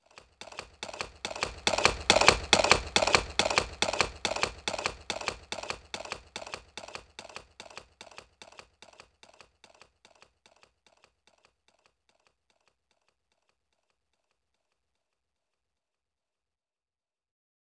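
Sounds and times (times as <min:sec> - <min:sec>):
horse galloping: 0:00.0 - 0:12.2.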